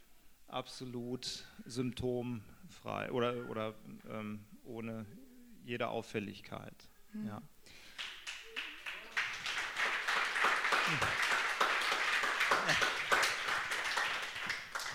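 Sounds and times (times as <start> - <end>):
speech: 0.5 - 7.9, 10.9 - 11.4, 12.7 - 12.9
audience applause: 7.9 - 14.9.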